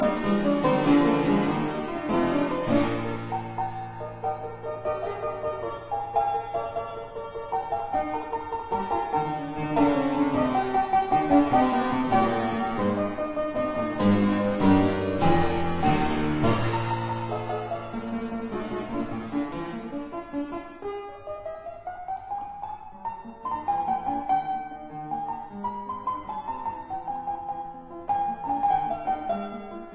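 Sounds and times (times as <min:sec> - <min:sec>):
keyboard sonata in C minor, fast finale: 0:00.0 - 0:29.9.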